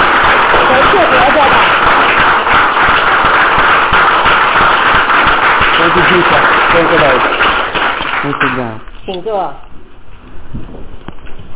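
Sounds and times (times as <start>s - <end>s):
audience clapping: 0.0s - 8.8s
speech: 6.1s - 7.4s, 8.2s - 10.8s.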